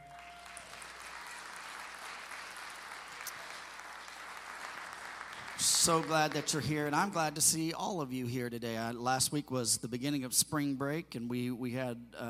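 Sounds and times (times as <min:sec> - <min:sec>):
church congregation applauding to welcome guests: 0:00.0 - 0:07.5
speech: 0:05.6 - 0:12.2.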